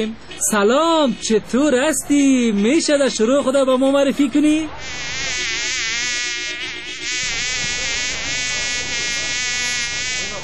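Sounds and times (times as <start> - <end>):
speech: 0.0 - 5.6
housefly buzzing: 4.8 - 10.4.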